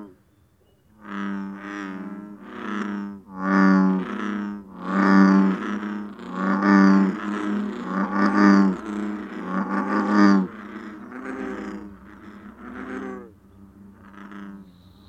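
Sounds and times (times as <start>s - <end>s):
American bullfrog call: 0.0s - 15.0s.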